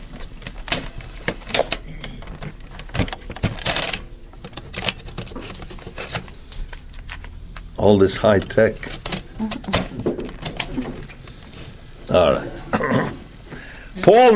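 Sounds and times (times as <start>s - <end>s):
cassette tape clicking and rattling as it is turned over in a recorder: 0.1s - 7.6s, 8.2s - 11.4s
speech: 7.8s - 9.8s, 12.2s - 12.6s, 14.0s - 14.3s.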